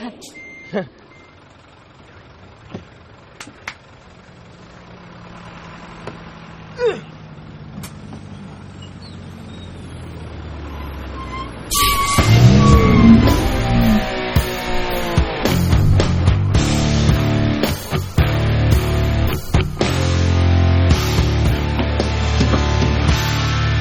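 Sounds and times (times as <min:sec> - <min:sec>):
vehicle engine rumble as it pulls up: 0:00.0 - 0:23.8
brief tones: 0:00.3 - 0:01.4, 0:11.2 - 0:14.2.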